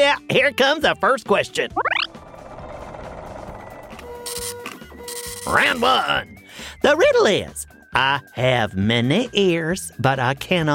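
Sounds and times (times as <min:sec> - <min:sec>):
speech: 0:00.1 - 0:02.0, 0:05.4 - 0:10.7
machine whirring: 0:02.1 - 0:05.8.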